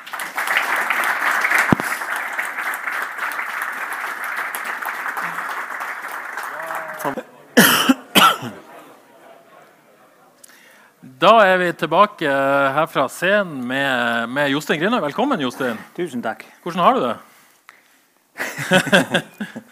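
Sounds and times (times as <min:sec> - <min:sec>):
audience applause: 0:00.0 - 0:10.0
laughter: 0:06.4 - 0:10.4, 0:18.4 - 0:19.7
speech: 0:11.2 - 0:17.3, 0:18.6 - 0:19.6.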